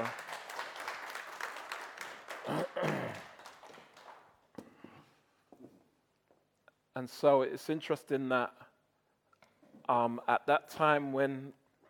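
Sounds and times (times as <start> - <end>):
audience applause: 0.0 - 4.4
speech: 7.0 - 8.6, 9.9 - 11.6.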